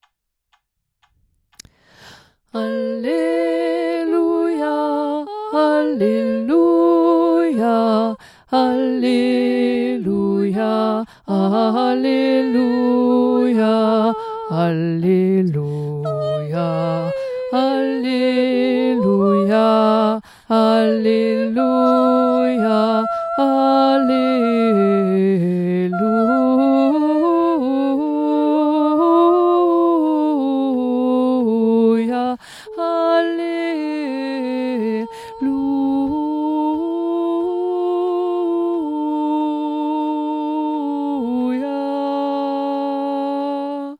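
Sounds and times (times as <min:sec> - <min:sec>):
soprano singing: 0:02.5 - 0:43.9.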